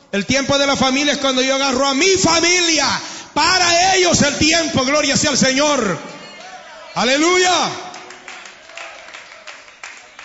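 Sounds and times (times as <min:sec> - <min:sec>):
speech: 0:00.1 - 0:06.2, 0:07.0 - 0:07.8
sparse applause from a church congregation: 0:06.2 - 0:10.2.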